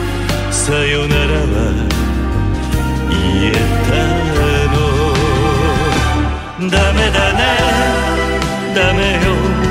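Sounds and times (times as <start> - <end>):
music not copyright: 0.0 - 9.7.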